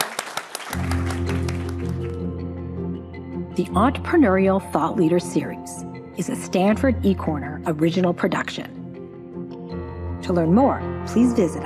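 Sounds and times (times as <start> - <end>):
audience applause: 0.0 - 2.2
speech: 3.6 - 8.8, 10.3 - 11.6.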